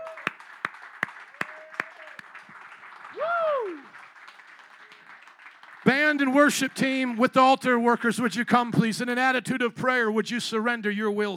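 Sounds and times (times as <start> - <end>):
audience hand clapping: 0.0 - 7.2
speech: 6.1 - 11.3.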